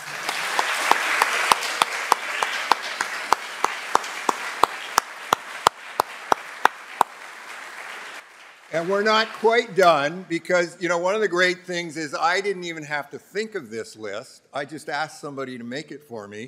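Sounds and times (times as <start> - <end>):
audience applause: 0.0 - 10.2
speech: 8.7 - 16.4.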